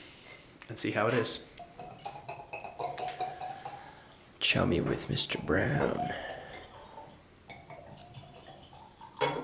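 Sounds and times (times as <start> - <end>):
speech: 0.7 - 1.5, 4.5 - 6.3
wine being poured from bottle into glasses: 1.6 - 4.1, 5.0 - 9.4.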